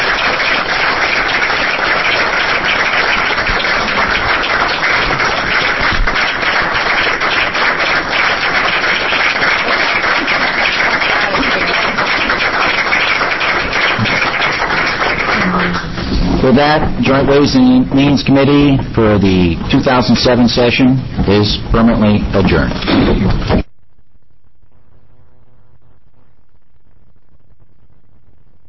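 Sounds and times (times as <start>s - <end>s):
applause: 0.0s - 16.1s
speech: 16.5s - 23.6s.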